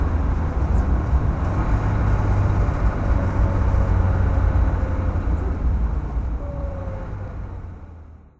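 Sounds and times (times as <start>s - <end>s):
1959 Jaguar XK 150 3.8 Litre S FHC engine driving: 0.0s - 8.3s.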